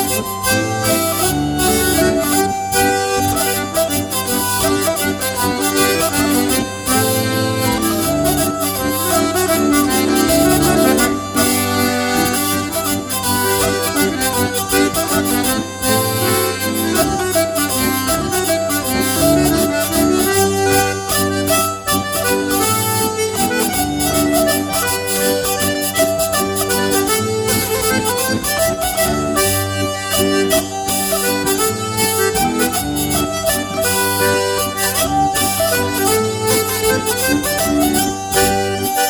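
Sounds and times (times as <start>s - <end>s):
mazurka folk music from Morvan: 0.0s - 39.0s.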